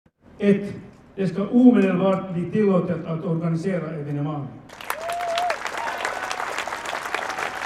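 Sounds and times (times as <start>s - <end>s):
speech: 0.4s - 4.8s
thunderous applause: 4.7s - 7.6s.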